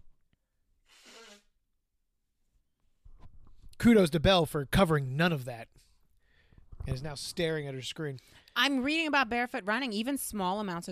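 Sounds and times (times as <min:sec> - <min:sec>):
person blowing nose: 0:00.8 - 0:01.6
speech: 0:03.8 - 0:05.9, 0:06.9 - 0:10.9.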